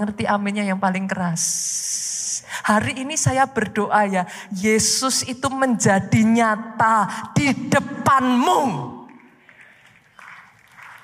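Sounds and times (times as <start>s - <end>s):
speech: 0.0s - 2.1s, 2.7s - 8.9s
crowd applause: 9.4s - 11.0s.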